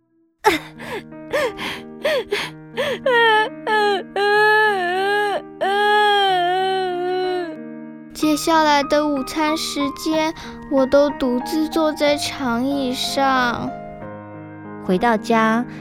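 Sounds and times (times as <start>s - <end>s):
speech: 0.5s - 3.6s, 8.4s - 13.8s, 14.9s - 15.8s
child panting: 0.5s - 6.3s
child wailing: 0.5s - 7.6s.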